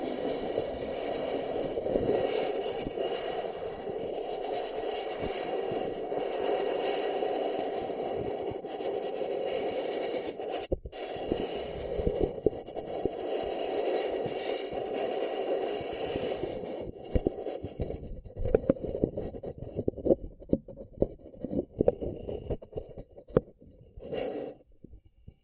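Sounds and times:
fingers scratching and rubbing a paper cup: 0.0s - 24.6s.

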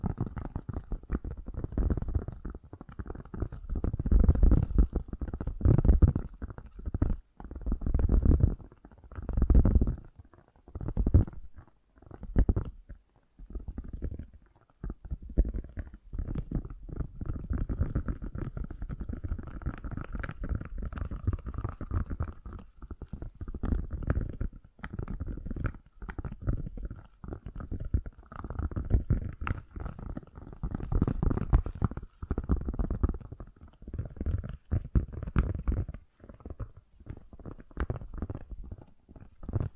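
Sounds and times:
fast gentle tapping: 0.0s - 39.7s.

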